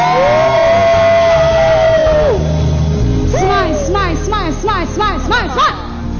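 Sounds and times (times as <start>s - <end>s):
high-pitched whoop: 0.0s - 2.7s
audience cheering: 0.0s - 6.0s.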